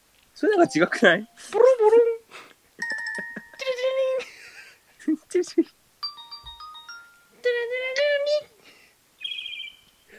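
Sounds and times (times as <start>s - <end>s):
speech: 0.4s - 2.1s, 5.3s - 5.8s
person imitating a video game startup jingle: 0.5s - 2.2s, 2.8s - 4.5s, 6.0s - 8.6s.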